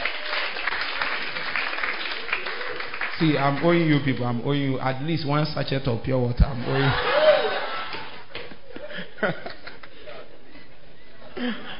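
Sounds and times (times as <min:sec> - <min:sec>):
audience clapping hands: 0:00.0 - 0:04.4
speech: 0:03.2 - 0:07.2, 0:09.2 - 0:09.5
laughter: 0:06.6 - 0:11.7.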